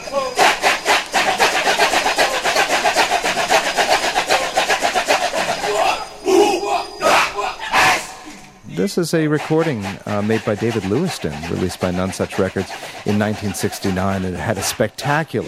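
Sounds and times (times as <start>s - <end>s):
chorus chanting, imitating monkeys: 0.0s - 15.4s
sharper shouted accents: 5.6s - 8.3s
speech: 8.8s - 15.4s.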